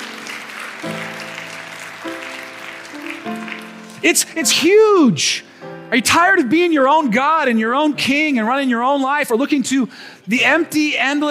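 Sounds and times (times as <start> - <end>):
audience clapping: 0.0 - 4.8
soft sustained keyboard chords: 0.0 - 9.0
speech: 4.0 - 11.3.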